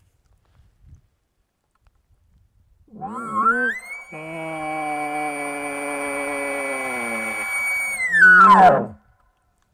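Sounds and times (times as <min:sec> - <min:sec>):
imitation elk bugle blown through a call tube: 0:02.9 - 0:09.0.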